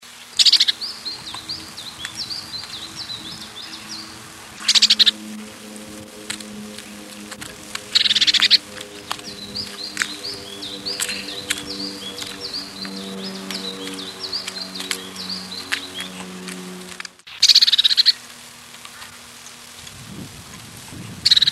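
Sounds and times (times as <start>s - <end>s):
low droning hum: 0.1s - 21.4s
Azure tit trilled calls: 0.3s - 18.2s.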